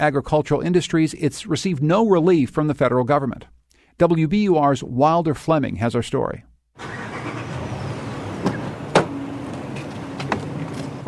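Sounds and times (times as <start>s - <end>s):
speech: 0.0s - 7.0s
pickup truck door: 6.8s - 11.0s.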